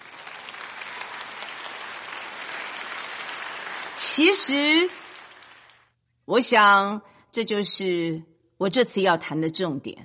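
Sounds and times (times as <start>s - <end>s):
audience applause: 0.0s - 5.9s
speech: 4.2s - 5.0s, 6.3s - 10.0s.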